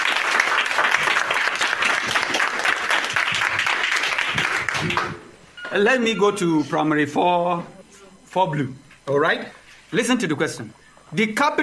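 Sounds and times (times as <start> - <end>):
crowd applause: 0.0 - 5.2
speech: 5.7 - 7.8, 8.4 - 11.6.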